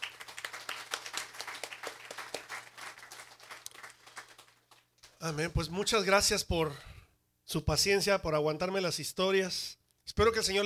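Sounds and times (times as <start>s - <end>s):
audience applause: 0.0s - 4.8s
speech: 5.2s - 6.9s, 7.5s - 10.6s.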